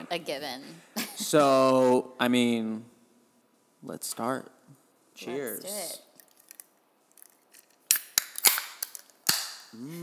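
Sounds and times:
speech: 0:00.2 - 0:02.9, 0:03.8 - 0:04.6, 0:05.2 - 0:06.0, 0:09.7 - 0:10.0
can of hard seltzer being opened: 0:06.2 - 0:09.7.

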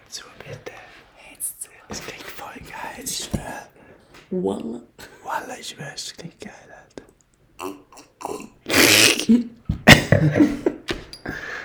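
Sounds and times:
speech: 0:00.1 - 0:00.6, 0:01.9 - 0:02.2, 0:03.0 - 0:06.9, 0:09.3 - 0:09.6, 0:10.2 - 0:10.6
sipping wine and gulping: 0:07.6 - 0:09.5
spluttering cough from choking on wine: 0:07.6 - 0:10.9
laughter: 0:09.9 - 0:10.9.

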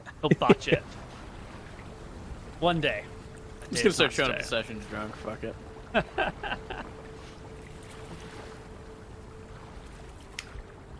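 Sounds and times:
laughter: 0:00.0 - 0:00.9, 0:05.9 - 0:06.9
wind and water noise of a ship on the open sea: 0:00.0 - 0:10.9
speech: 0:00.2 - 0:01.0, 0:02.6 - 0:03.1, 0:03.7 - 0:06.9.

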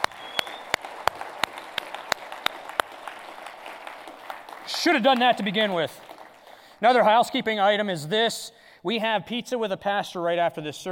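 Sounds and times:
scattered applause: 0:00.0 - 0:07.0
crowd noise: 0:00.0 - 0:07.2
audience clapping in steady unison rhythm: 0:00.0 - 0:07.4
speech: 0:04.8 - 0:06.0, 0:06.8 - 0:10.9.

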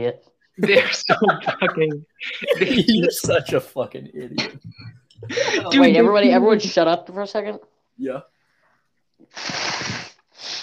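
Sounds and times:
speech: 0:00.0 - 0:08.3, 0:09.2 - 0:10.6
laughter: 0:00.6 - 0:06.4
person blowing nose: 0:09.2 - 0:10.6.

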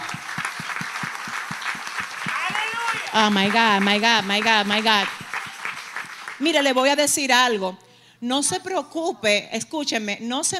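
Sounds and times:
crowd noise and scattered voices: 0:00.0 - 0:06.4
rhythmic audience clapping: 0:00.0 - 0:06.9
speech: 0:03.1 - 0:05.2, 0:06.4 - 0:10.5.

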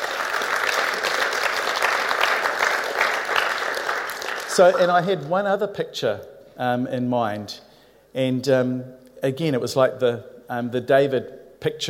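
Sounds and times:
audience clapping: 0:00.0 - 0:05.3
speech: 0:04.6 - 0:11.8.

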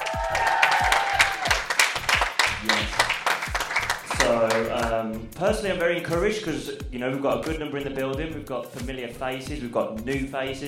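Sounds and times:
live audience applauding and cheering at a recording: 0:00.0 - 0:04.7
speech: 0:05.4 - 0:10.6.

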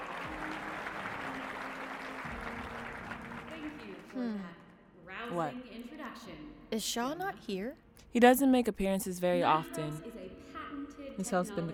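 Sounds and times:
audience applause: 0:00.0 - 0:04.2
speech: 0:05.3 - 0:10.2, 0:11.2 - 0:11.7.

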